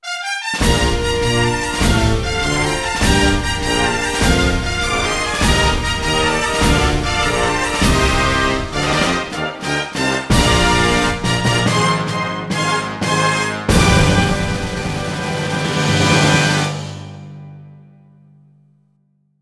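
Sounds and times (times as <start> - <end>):
fanfare: 0.0 - 17.5.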